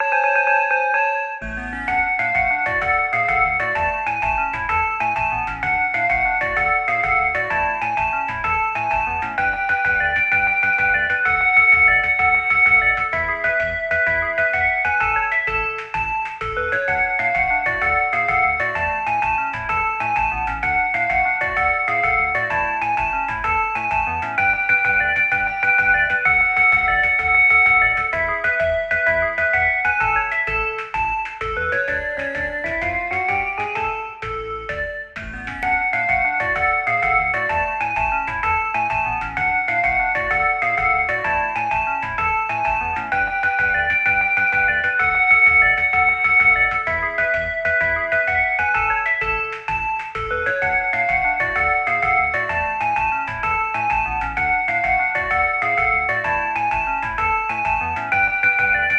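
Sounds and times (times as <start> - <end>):
background music: 0.0 - 58.9.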